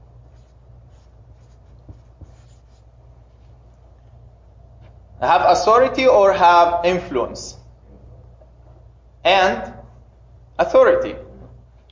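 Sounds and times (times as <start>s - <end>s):
steady low hum: 0.0s - 11.9s
writing on a board: 0.2s - 2.9s
speech: 5.2s - 7.6s, 9.2s - 9.7s, 10.6s - 11.2s.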